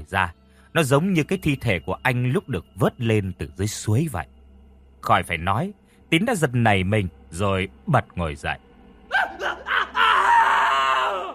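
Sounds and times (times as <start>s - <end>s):
speech: 0.0s - 4.4s, 5.0s - 8.7s
man's shrill terrified scream: 9.1s - 11.3s.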